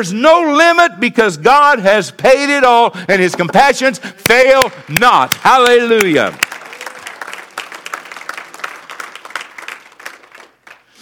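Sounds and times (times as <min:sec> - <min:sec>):
speech: 0:00.0 - 0:06.5
audience clapping: 0:04.2 - 0:11.0.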